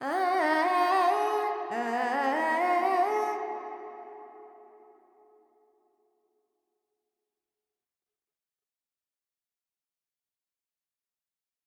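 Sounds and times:
Carnatic female vocal alaps in Dorian: 0:00.0 - 0:04.2.

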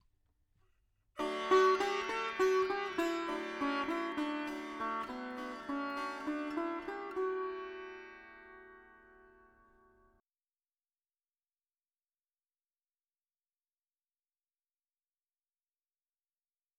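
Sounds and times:
dry veena melody: 0:01.2 - 0:10.2.

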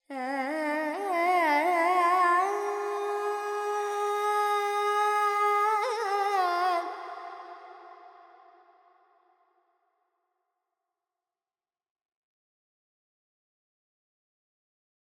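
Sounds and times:
Carnatic female alap in Purvi Kalyani: 0:00.0 - 0:07.9.

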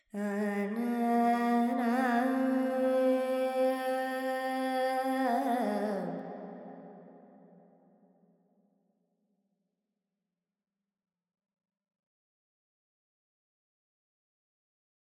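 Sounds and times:
Carnatic female alap in Lydian with reverb: 0:00.1 - 0:06.4.

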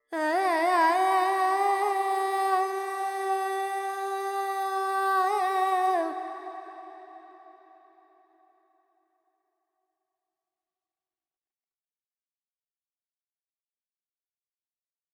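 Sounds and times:
Carnatic female alap in raga Panthuvarali: 0:00.0 - 0:07.6.

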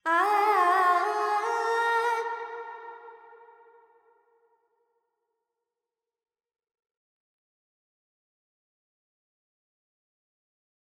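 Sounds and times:
woman singing Carnatic pentatonic alap in G: 0:00.0 - 0:03.0.

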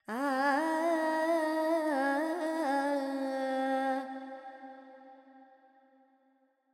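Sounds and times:
Carnatic female singer singing alap: 0:00.1 - 0:04.2.

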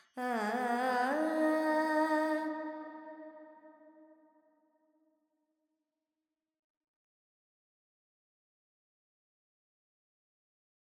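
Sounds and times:
Carnatic female vocal alap in Phrygian mode: 0:00.0 - 0:02.8.

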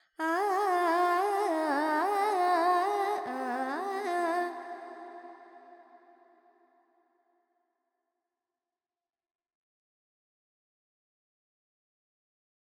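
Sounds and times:
Carnatic female vocal alaps in G pentatonic: 0:00.2 - 0:05.7.

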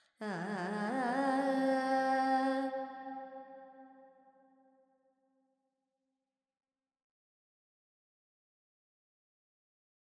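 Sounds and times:
woman singing Carnatic alap in raga Charukesi with reverb: 0:00.2 - 0:02.8.

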